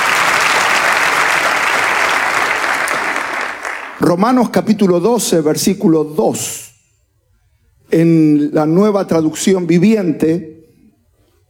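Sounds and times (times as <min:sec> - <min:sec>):
audience applause: 0:00.0 - 0:04.1
speech: 0:04.0 - 0:06.7, 0:07.9 - 0:10.5.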